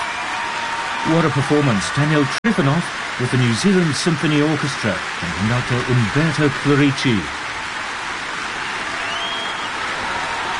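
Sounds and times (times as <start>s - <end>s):
concert audience applauding: 0.0s - 10.5s
speech: 1.0s - 7.4s.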